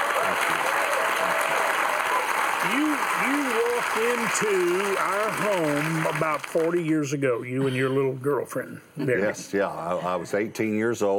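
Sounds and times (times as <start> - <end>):
studio audience applause welcoming a guest to a television talk show: 0.0 - 7.2
speech: 2.6 - 11.1.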